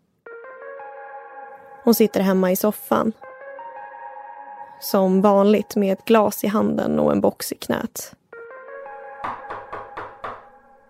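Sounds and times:
speech: 1.8s - 3.3s, 4.8s - 8.2s
knocking on a door: 9.2s - 10.6s.

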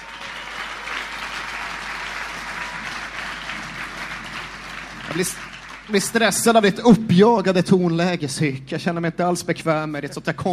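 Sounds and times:
applause: 0.0s - 6.8s
speech: 5.1s - 10.5s.

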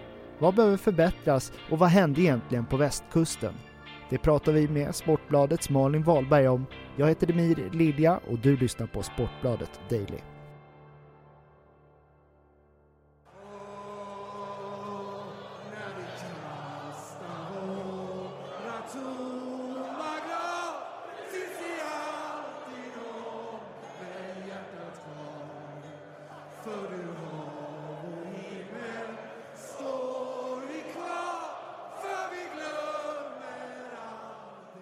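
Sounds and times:
speech: 0.4s - 10.3s
large stadium crowd singing in unison: 13.3s - 34.7s
people shouting: 13.4s - 22.6s, 29.8s - 33.6s.

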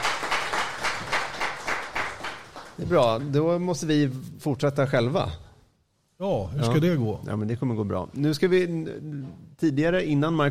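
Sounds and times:
small applause: 0.0s - 3.4s
speech: 2.8s - 5.4s, 6.2s - 10.4s.

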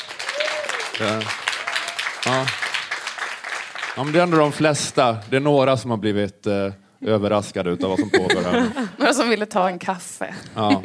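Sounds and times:
audience applause in a café: 0.0s - 5.3s
speech: 1.0s - 1.4s, 2.2s - 2.7s, 4.0s - 10.8s
laughter: 7.8s - 9.0s, 10.4s - 10.8s.

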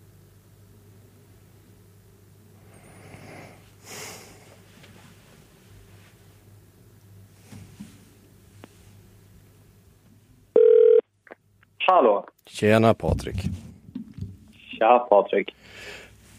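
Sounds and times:
faint low hum: 0.0s - 16.3s
telephone ringing tone as a call is placed: 10.6s - 11.0s
speech: 11.9s - 13.6s, 14.8s - 15.9s.

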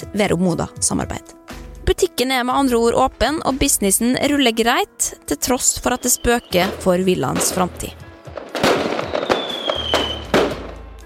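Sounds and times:
speech: 0.0s - 8.0s
firework whistling whine: 5.8s - 6.7s, 9.0s - 10.3s
fireworks exploding on New Year's Eve: 5.8s - 10.9s.

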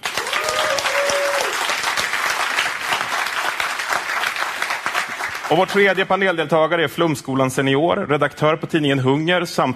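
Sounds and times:
audience applause: 0.0s - 6.1s
speech: 5.5s - 9.7s.

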